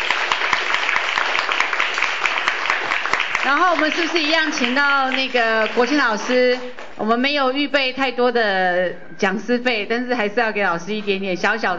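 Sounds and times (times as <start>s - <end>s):
audience applause: 0.0s - 6.9s
speech: 3.4s - 11.7s.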